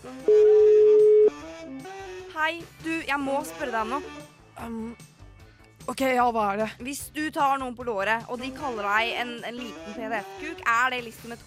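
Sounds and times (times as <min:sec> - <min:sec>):
speech: 0:00.0 - 0:00.4, 0:02.5 - 0:05.1, 0:05.9 - 0:11.4
telephone ring tone as a call is placed: 0:00.3 - 0:01.4.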